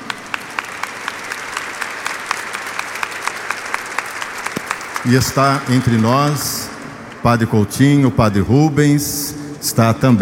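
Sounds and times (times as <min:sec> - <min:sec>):
audience applauding: 0:00.0 - 0:07.3
speech: 0:05.0 - 0:10.2.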